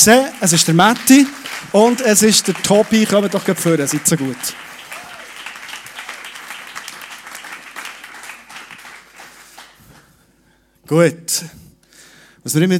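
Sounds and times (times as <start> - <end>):
speech: 0.0 - 4.7, 10.9 - 11.6, 12.4 - 12.7
crowd applauding: 0.0 - 10.1.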